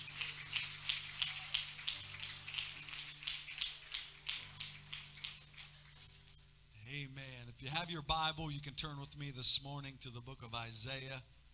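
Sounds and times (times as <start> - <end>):
audience clapping hands: 0.0 - 6.4
speech: 6.9 - 11.4.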